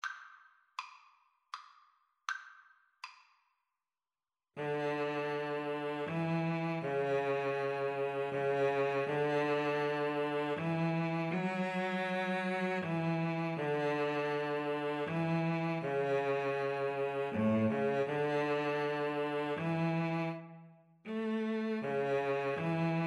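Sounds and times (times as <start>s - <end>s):
violin and cello duet: 4.6s - 23.0s.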